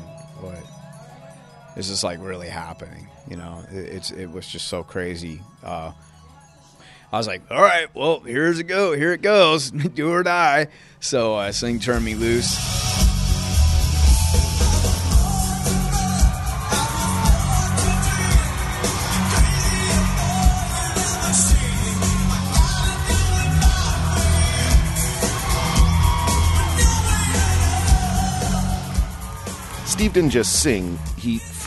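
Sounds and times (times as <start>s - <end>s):
speech: 1.8s - 6.1s, 7.1s - 12.8s, 30.0s - 31.6s
audience cheering and yelling at a live show: 12.6s - 31.6s.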